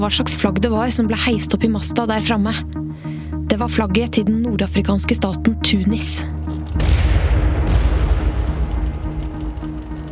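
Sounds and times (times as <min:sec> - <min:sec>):
speech: 0:00.0 - 0:06.4
cannon fire boom: 0:06.7 - 0:10.0.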